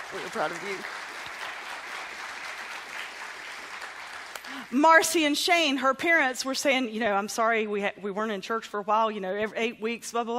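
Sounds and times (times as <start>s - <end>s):
church congregation applauding: 0.0s - 4.8s
speech: 0.1s - 1.0s, 4.5s - 10.3s.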